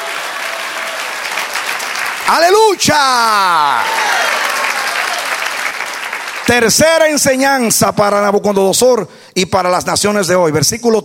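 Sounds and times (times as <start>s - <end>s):
audience applause: 0.0s - 7.2s
speech: 2.3s - 4.4s, 6.5s - 11.0s.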